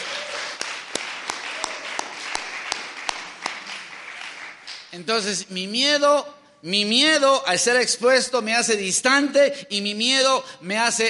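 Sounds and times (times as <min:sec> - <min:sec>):
audience applauding: 0:00.0 - 0:04.9
speech: 0:04.9 - 0:11.0.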